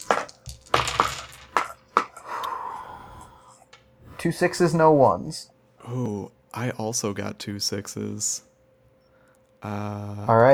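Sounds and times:
dice being rolled: 0:00.0 - 0:02.2
speech: 0:04.2 - 0:08.5, 0:09.6 - 0:10.5.

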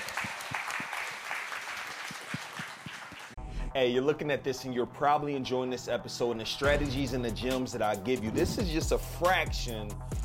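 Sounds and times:
crowd applauding: 0:00.0 - 0:03.4
speech: 0:03.7 - 0:10.2.

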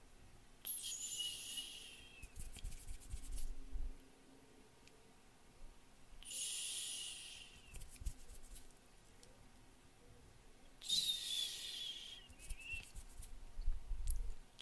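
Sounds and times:
bright hissy hand rubbing: 0:00.7 - 0:03.6, 0:06.2 - 0:08.8, 0:10.8 - 0:13.4.

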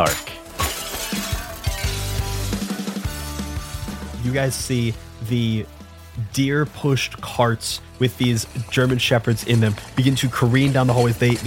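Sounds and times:
speech: 0:00.0 - 0:00.3, 0:04.2 - 0:11.4
tinkling glass shards: 0:00.0 - 0:02.7, 0:07.8 - 0:11.4
light bulbs shattering: 0:00.0 - 0:03.4, 0:07.9 - 0:11.4.

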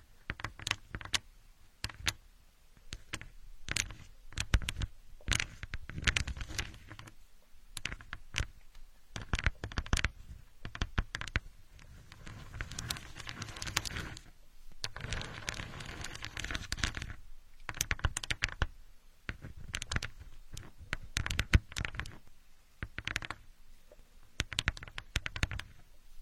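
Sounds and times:
building blocks rustling and scraping: 0:00.0 - 0:02.2, 0:02.8 - 0:18.7, 0:19.3 - 0:23.5, 0:24.4 - 0:26.2
building blocks clacking and tapping: 0:00.2 - 0:01.2, 0:02.9 - 0:07.2, 0:07.8 - 0:08.6, 0:09.2 - 0:18.7, 0:19.3 - 0:22.2, 0:22.8 - 0:23.4, 0:24.4 - 0:25.8.

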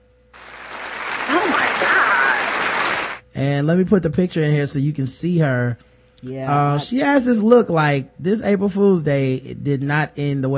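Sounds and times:
group applause: 0:00.4 - 0:03.2
speech: 0:03.4 - 0:10.5.

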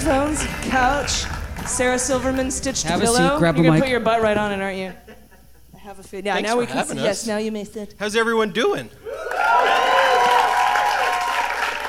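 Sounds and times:
audience applause: 0:00.0 - 0:02.7, 0:09.1 - 0:11.8
speech: 0:00.0 - 0:05.2, 0:05.8 - 0:09.9
audience cheering and whoops: 0:09.0 - 0:11.8.

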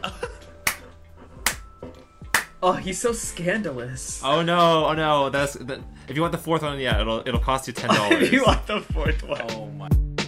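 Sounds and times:
hand claps: 0:00.6 - 0:02.6
speech: 0:02.6 - 0:09.7
laughter: 0:07.8 - 0:09.2.

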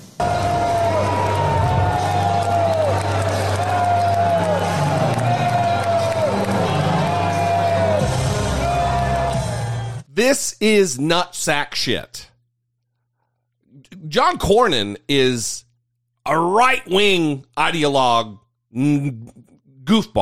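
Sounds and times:
large crowd booing a speaker: 0:00.1 - 0:10.0
speech: 0:10.2 - 0:12.3, 0:14.0 - 0:15.6, 0:16.2 - 0:20.2.

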